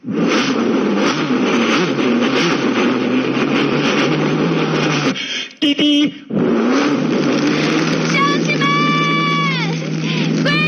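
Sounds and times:
car engine starting and revving: 0.0 - 10.6.

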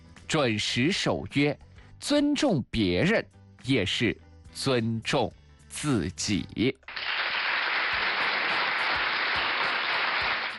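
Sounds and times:
speech: 0.3 - 7.1
applause: 6.9 - 10.5.

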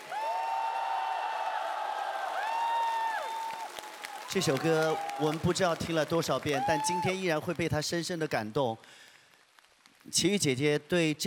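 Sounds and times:
high sustained cheers or whoops: 0.0 - 5.6, 6.4 - 7.3
crowd applauding: 0.0 - 7.5
speech: 4.3 - 9.1, 10.1 - 11.2.

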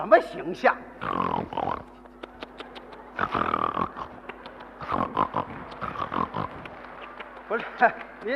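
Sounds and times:
speech: 0.0 - 2.0, 3.2 - 4.1, 7.5 - 8.3
man imitating snoring: 1.0 - 1.9, 3.2 - 4.2, 4.8 - 6.6.

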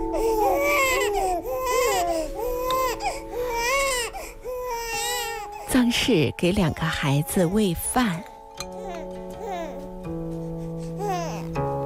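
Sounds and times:
baby babbling: 0.0 - 5.8, 8.8 - 9.9, 10.8 - 11.6
two babies crying together: 0.0 - 7.8, 8.7 - 11.7.

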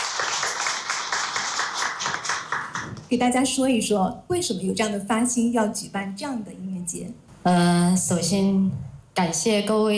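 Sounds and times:
audience applauding: 0.0 - 3.1
speech: 3.1 - 9.9.

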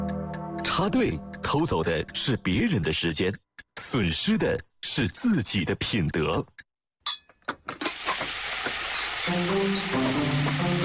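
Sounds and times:
speech: 0.8 - 6.5, 9.3 - 10.8
food frying in hot oil: 7.8 - 10.8.

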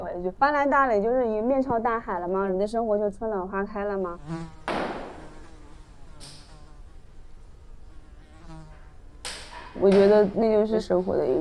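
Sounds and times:
speech: 0.2 - 4.6, 9.8 - 11.3
housefly buzzing: 3.6 - 10.2.

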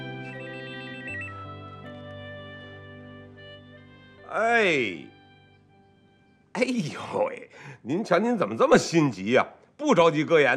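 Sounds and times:
telephone ringing: 0.0 - 2.0
speech: 4.3 - 5.1, 6.6 - 10.5.

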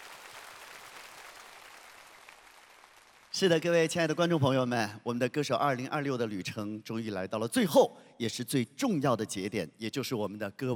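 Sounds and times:
crowd applauding: 0.0 - 3.4
speech: 3.4 - 10.7.

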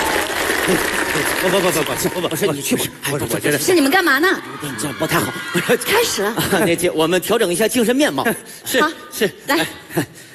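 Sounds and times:
audience clapping: 0.0 - 2.9
speech: 0.7 - 10.3.

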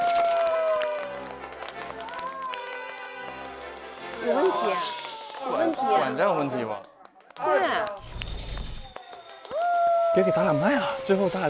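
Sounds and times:
audience applause: 0.0 - 8.0, 8.9 - 11.4
speech: 4.2 - 7.9, 10.2 - 11.4.

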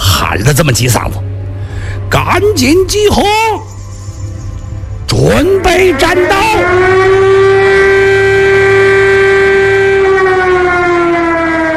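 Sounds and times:
speech: 0.3 - 1.3, 2.1 - 3.8, 5.2 - 7.6
air raid siren wailing: 5.3 - 11.7.

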